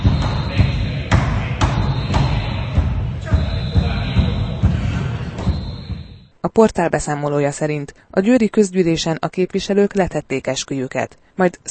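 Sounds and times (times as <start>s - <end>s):
high whistling tone: 0.0s - 6.3s
protesters banging heavily on a door: 0.0s - 6.3s
speech: 6.6s - 11.6s.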